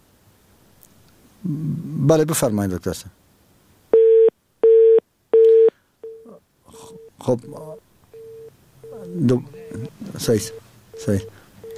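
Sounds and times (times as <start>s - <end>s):
speech: 1.4s - 3.2s, 7.2s - 7.7s, 9.1s - 11.7s
telephone busy tone after a radio call-in line disconnects: 4.0s - 7.2s, 8.2s - 11.7s.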